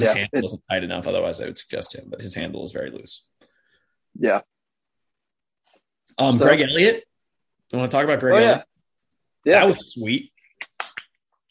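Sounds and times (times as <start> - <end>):
speech: 0.0 - 3.4, 4.2 - 4.5, 6.2 - 7.1, 7.7 - 8.7, 9.4 - 10.3
hand clap: 10.6 - 11.2.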